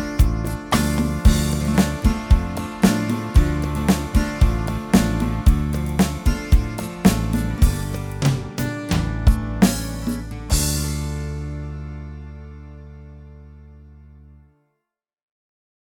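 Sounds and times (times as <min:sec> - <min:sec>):
beguine dance music: 0:00.0 - 0:11.3.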